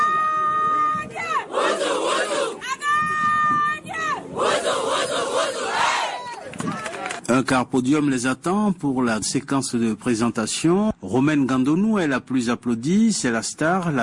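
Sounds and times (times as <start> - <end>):
women's football team shouting battle cry: 0.0 - 6.5
speech: 7.4 - 14.0.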